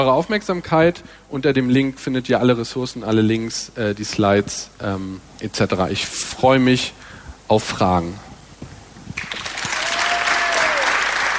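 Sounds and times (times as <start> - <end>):
speech: 0.0 - 8.3
audience applause: 9.2 - 11.3.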